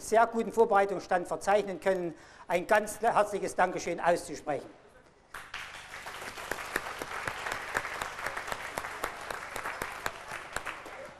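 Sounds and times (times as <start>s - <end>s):
speech: 0.1s - 4.8s
audience applause: 5.4s - 11.1s.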